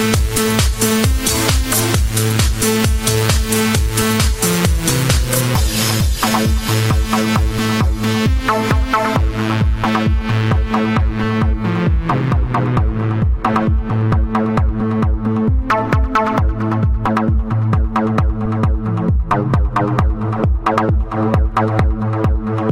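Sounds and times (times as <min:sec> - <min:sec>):
electro house music: 0:00.0 - 0:22.7.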